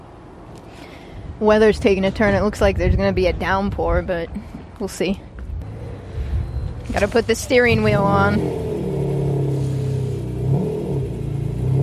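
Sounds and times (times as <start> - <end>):
speech: 1.4 - 5.3, 6.9 - 8.7
car engine revving: 5.6 - 11.8.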